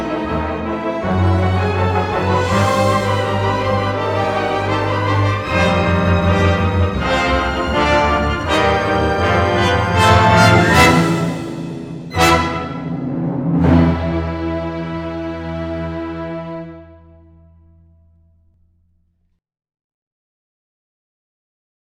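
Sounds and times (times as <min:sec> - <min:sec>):
comedy car chase music: 0:00.0 - 0:16.8.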